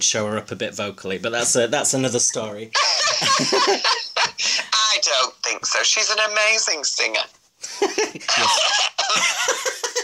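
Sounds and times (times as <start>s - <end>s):
speech: 0.0s - 9.7s
laughter: 2.8s - 4.7s, 7.7s - 10.0s
person coughing: 8.3s - 9.1s.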